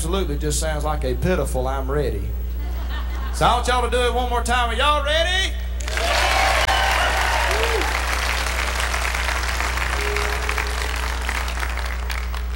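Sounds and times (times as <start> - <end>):
speech: 0.0 - 2.4, 3.4 - 5.6
steady low hum: 0.0 - 12.5
laughter: 2.6 - 3.6
audience hollering and cheering: 5.9 - 12.5.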